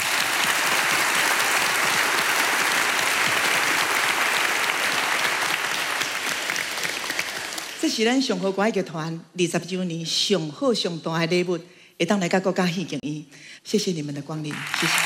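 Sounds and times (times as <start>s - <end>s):
large audience applause: 0.0s - 7.8s, 14.5s - 15.0s
speech: 7.8s - 15.0s.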